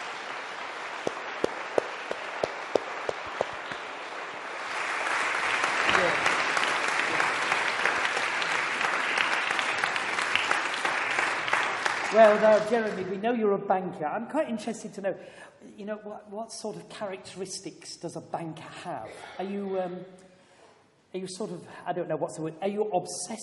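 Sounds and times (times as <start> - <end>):
audience applause welcoming a speaker: 0.0 - 12.9
speech: 12.2 - 20.2, 21.1 - 23.4.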